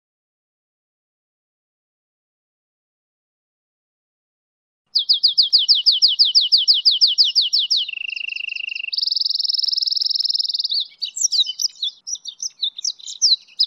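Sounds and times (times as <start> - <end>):
goldfinch and canary hybrid singing a high varied warble: 5.0 - 13.6.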